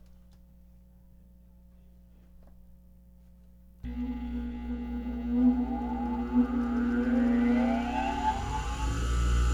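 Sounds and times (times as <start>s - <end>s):
grinder: 3.9s - 9.4s.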